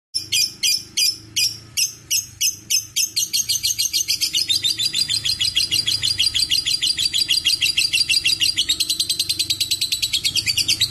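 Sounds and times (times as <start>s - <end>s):
lovebirds chattering in high squeaky chirps: 0.2s - 10.8s.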